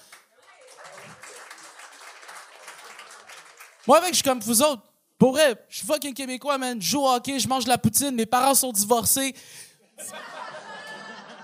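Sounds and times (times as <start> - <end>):
crowd applauding: 0.0 - 4.2
speech: 3.9 - 10.3
laughter: 10.0 - 11.4.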